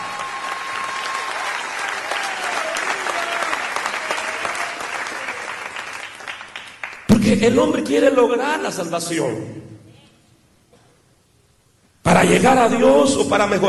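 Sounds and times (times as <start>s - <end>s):
audience applauding: 0.0s - 7.1s
speech: 7.3s - 9.7s, 12.3s - 13.6s.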